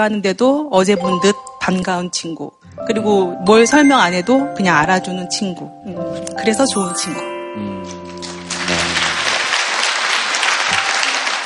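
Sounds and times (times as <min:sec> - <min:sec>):
speech: 0:00.0 - 0:08.4
audience applause: 0:08.1 - 0:11.4.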